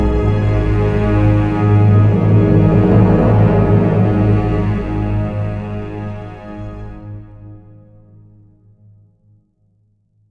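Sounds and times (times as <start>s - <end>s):
magical trailer transition effect: 0.1s - 6.7s.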